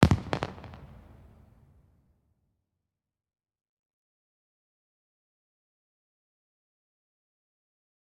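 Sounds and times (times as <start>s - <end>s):
celebration fireworks: 0.0s - 1.8s.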